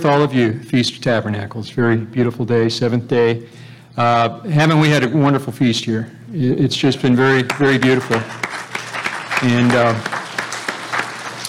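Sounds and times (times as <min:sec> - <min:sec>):
speech: 0:00.0 - 0:08.5, 0:09.4 - 0:10.2
audience applause: 0:07.2 - 0:11.4.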